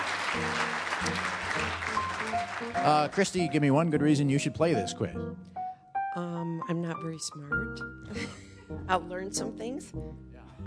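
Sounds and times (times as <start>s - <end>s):
studio audience applause on a quiz show: 0.0s - 4.3s
speech: 2.7s - 5.5s, 6.1s - 10.6s.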